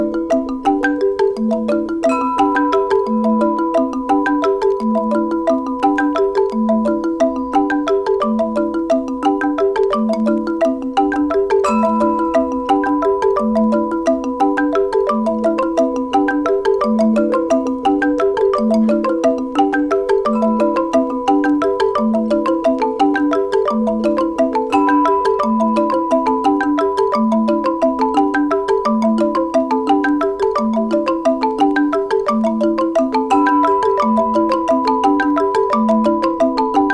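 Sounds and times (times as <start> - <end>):
angklung percussion: 0.0 - 36.9.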